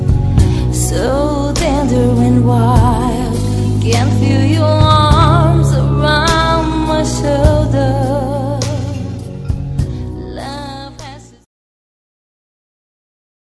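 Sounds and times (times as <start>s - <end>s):
woman singing a flirtatious sung telegram message: 0.4s - 11.5s.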